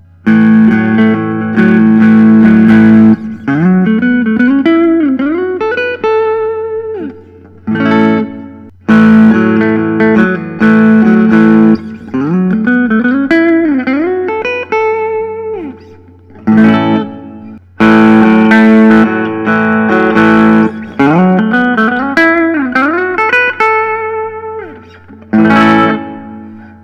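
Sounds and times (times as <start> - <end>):
Collings I 35 Deluxe guitar: 0.0 - 26.8.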